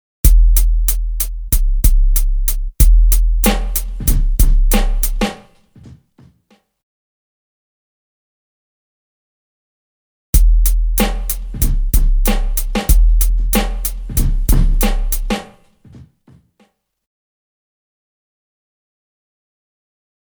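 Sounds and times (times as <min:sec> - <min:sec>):
drum loop: 0:00.3 - 0:05.9, 0:10.4 - 0:15.6.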